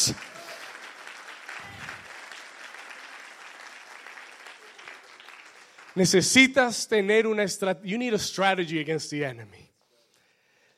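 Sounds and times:
speech: 0.0 - 0.3, 6.0 - 9.7
audience applauding and cheering: 0.0 - 6.7.

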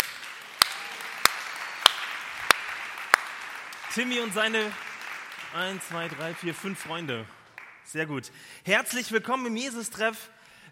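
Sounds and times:
audience applause: 0.0 - 7.8
speech: 3.9 - 4.9, 5.5 - 10.7.

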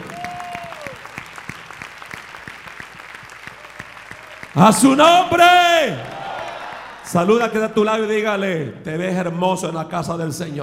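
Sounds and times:
audience applause: 0.0 - 7.1
speech: 4.6 - 6.1, 7.1 - 10.6.

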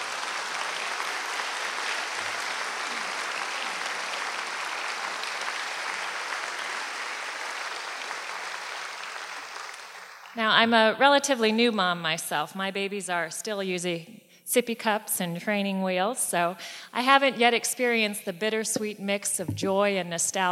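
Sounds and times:
audience applause: 0.0 - 10.4
speech: 10.4 - 20.5.

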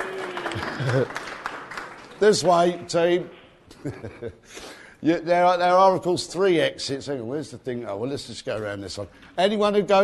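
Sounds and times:
round of applause: 0.0 - 2.8
speech: 0.8 - 1.4, 2.2 - 10.0.

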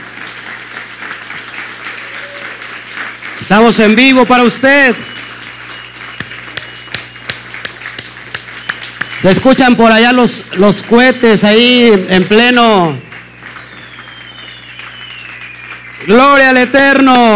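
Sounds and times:
audience applauding: 0.0 - 10.0, 10.7 - 17.3
speech: 3.4 - 5.2, 9.2 - 13.1, 16.1 - 17.3.

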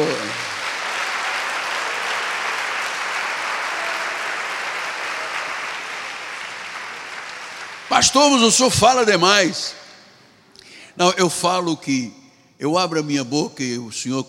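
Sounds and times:
audience applause: 0.0 - 8.5
speech: 8.0 - 9.8, 11.0 - 14.2.

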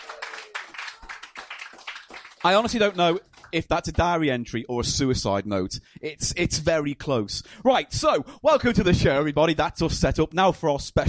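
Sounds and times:
audience applause: 0.0 - 3.6
speech: 2.4 - 11.0.

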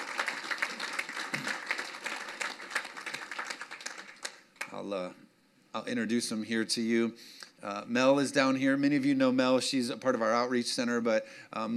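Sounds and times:
audience applause welcoming a team onto a stage: 0.0 - 4.7
speech: 4.8 - 11.7.

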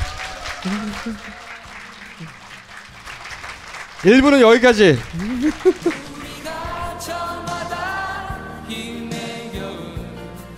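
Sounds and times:
applause: 0.0 - 6.9
laughter: 0.1 - 2.8, 4.1 - 6.4
speech: 0.6 - 1.5, 2.2 - 2.4, 4.0 - 6.2.

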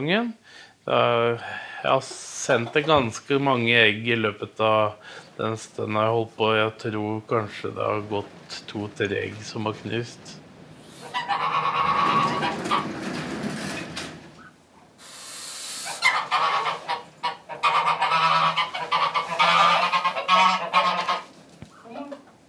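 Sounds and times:
speech: 0.0 - 10.4
Smålensgås geese honking: 10.8 - 13.0, 14.4 - 22.1.

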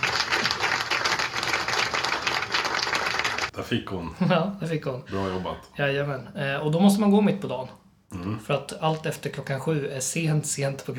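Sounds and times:
applause: 0.0 - 3.5
speech: 3.6 - 10.9.

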